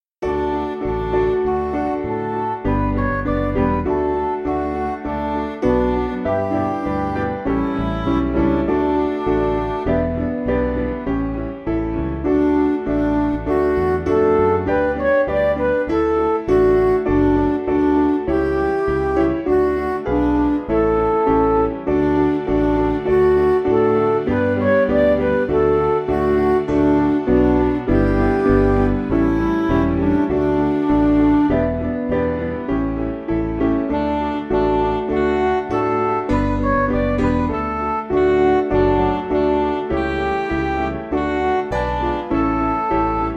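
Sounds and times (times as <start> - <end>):
backing music for churches: 0.3 - 43.3.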